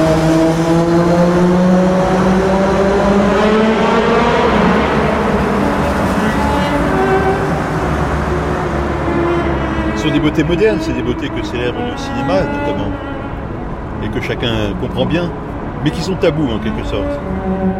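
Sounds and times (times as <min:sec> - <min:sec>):
motorcycle passing by: 0:00.0 - 0:13.3
speech: 0:10.2 - 0:13.2, 0:14.0 - 0:17.7.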